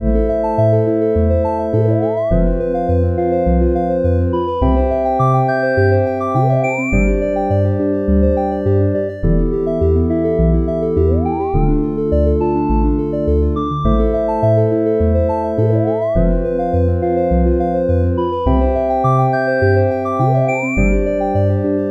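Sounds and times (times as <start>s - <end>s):
cyber loop: 0.0s - 21.8s.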